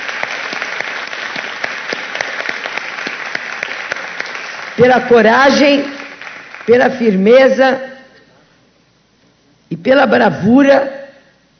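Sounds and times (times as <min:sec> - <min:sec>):
round of applause: 0:00.0 - 0:06.9
speech: 0:04.8 - 0:06.0, 0:06.7 - 0:07.9, 0:09.8 - 0:11.0.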